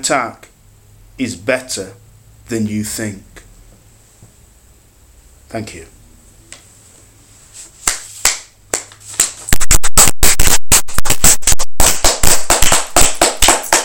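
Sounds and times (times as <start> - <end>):
speech: 0.0 - 0.5, 1.2 - 3.5, 5.5 - 6.0
hand clapping: 7.8 - 13.8.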